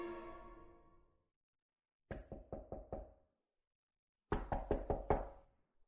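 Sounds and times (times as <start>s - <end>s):
knocking on a door: 2.1s - 3.2s, 4.3s - 5.4s.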